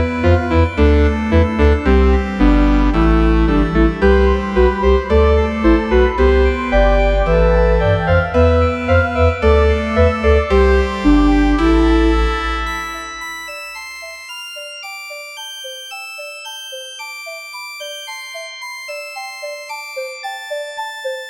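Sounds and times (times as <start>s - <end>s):
flutes: 0.0s - 13.5s.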